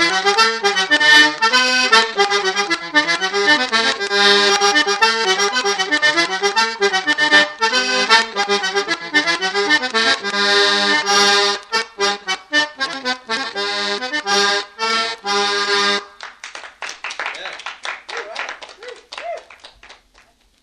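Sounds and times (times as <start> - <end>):
jig tune: 0.0 - 16.1.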